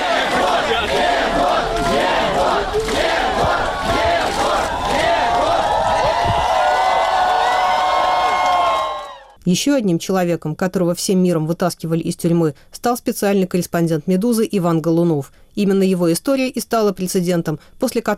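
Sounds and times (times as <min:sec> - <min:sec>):
crowd ovation outside a court: 0:00.0 - 0:09.4
speech: 0:09.5 - 0:18.1.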